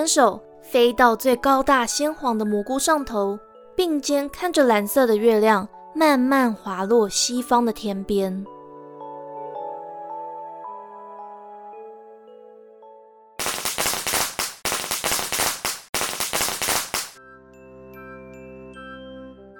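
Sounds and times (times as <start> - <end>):
speech: 0.0 - 8.6
New Year firecrackers exploding: 13.4 - 17.2.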